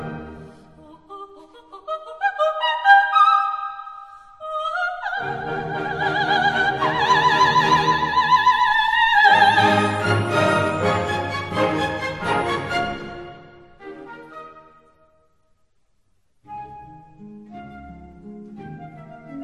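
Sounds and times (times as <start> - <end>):
soprano singing: 0.0 - 3.8, 4.4 - 14.6.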